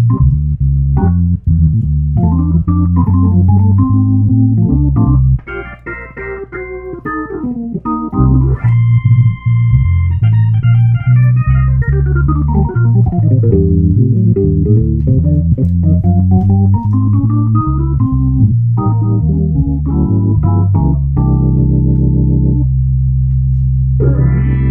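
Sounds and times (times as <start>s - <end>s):
Hammond C-3 organ playing jazzy examples: 0.0s - 24.7s.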